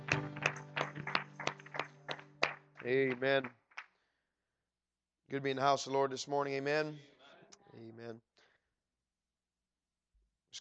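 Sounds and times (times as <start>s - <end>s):
audience applause: 0.0s - 3.5s
speech: 2.8s - 3.6s, 5.3s - 7.1s, 7.7s - 8.3s.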